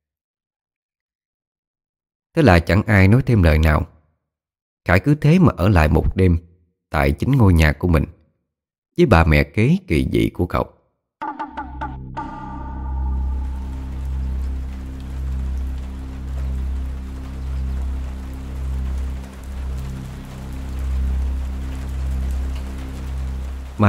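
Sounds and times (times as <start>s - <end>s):
speech: 2.4s - 3.9s, 4.8s - 8.2s, 9.0s - 10.8s
deep sustained humming drone: 11.2s - 23.8s
rain falling: 12.8s - 23.8s.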